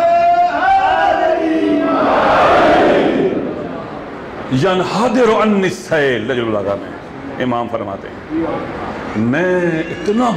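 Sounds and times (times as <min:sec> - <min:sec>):
crowd shouting a slogan at a religious gathering: 0:00.0 - 0:04.2
speech: 0:04.5 - 0:10.3.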